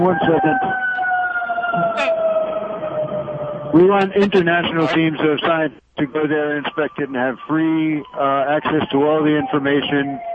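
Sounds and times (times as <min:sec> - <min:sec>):
speech: 0:00.0 - 0:00.9, 0:01.7 - 0:10.3
fire truck siren: 0:00.0 - 0:10.3.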